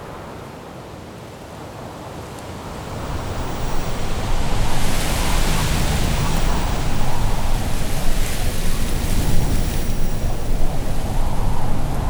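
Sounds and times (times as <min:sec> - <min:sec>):
ice forest ambience: 0:02.7 - 0:12.0.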